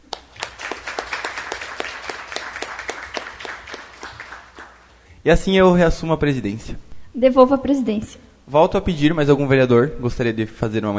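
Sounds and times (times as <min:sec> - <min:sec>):
applause: 0:00.0 - 0:05.0
speech: 0:05.2 - 0:10.9.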